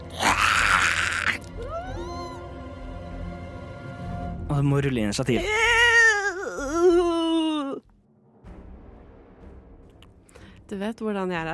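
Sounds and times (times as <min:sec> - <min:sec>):
creature shrieking: 0:00.0 - 0:02.3, 0:05.4 - 0:07.8
speech: 0:04.6 - 0:05.7, 0:10.7 - 0:11.5.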